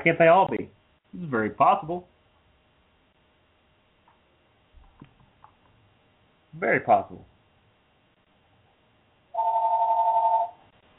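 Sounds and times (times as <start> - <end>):
speech: 0.0 - 2.1, 6.5 - 7.3
telephones ringing: 9.4 - 10.6.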